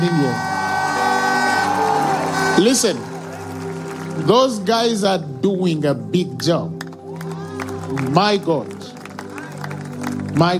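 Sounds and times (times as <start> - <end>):
speech: 0.0 - 0.5, 2.6 - 3.2, 4.2 - 6.8, 7.9 - 8.8, 10.4 - 10.5
people shouting: 0.4 - 2.8.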